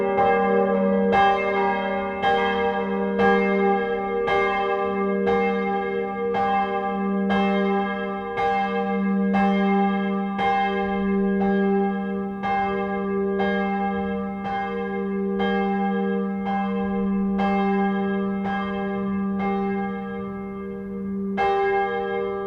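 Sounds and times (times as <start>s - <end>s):
church bells ringing together: 0.0s - 22.4s.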